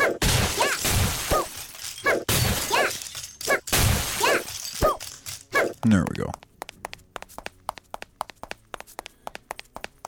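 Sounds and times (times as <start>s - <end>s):
video game glass tubes shattering: 0.2s - 5.7s
speech: 5.8s - 6.4s.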